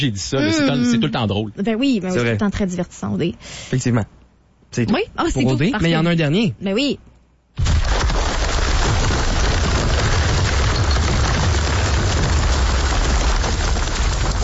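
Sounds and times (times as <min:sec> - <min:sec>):
speech: 0:00.0 - 0:07.7
heavy hail falling on a hot tub: 0:07.7 - 0:14.4.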